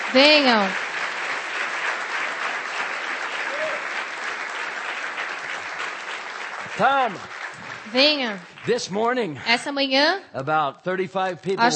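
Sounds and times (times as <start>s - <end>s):
audience applause: 0.0s - 9.4s
speech: 0.1s - 0.8s, 6.8s - 11.7s.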